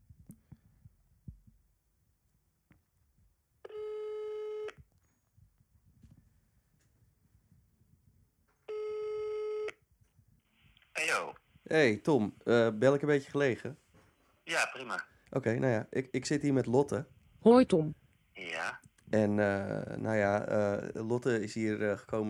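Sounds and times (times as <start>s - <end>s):
telephone ringback tone: 3.7s - 4.7s, 8.7s - 9.7s
speech: 11.1s - 13.8s, 14.8s - 18.0s, 18.6s - 22.2s.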